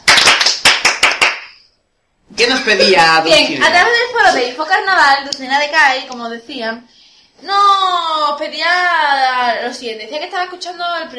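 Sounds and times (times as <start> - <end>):
applause: 0.0 - 1.6
speech: 2.4 - 11.1.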